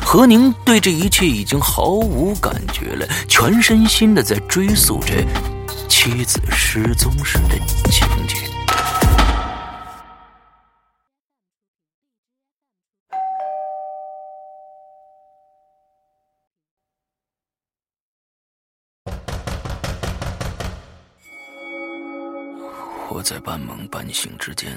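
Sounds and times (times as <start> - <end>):
speech: 0.1 - 8.4, 23.4 - 24.7
doorbell ringing: 13.1 - 16.0, 21.3 - 24.5
banging on a door: 19.1 - 21.1.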